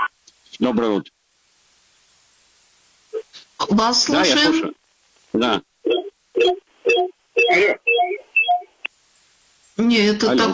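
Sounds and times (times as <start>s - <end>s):
speech: 0.6s - 1.2s, 3.7s - 5.7s, 6.4s - 8.2s, 9.8s - 10.5s
radio playing short tonal bursts in a studio: 5.8s - 8.9s.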